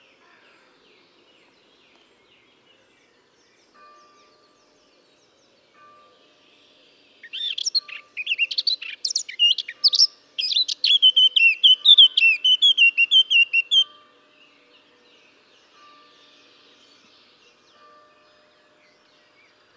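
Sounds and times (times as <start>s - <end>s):
Eurasian blackcap Sylvia atricapilla fluty whistled phrase: 7.4s - 13.8s.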